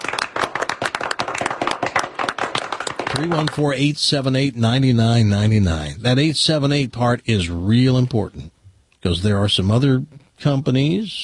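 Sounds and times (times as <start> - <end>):
round of applause: 0.0 - 3.8
speech: 3.2 - 11.2.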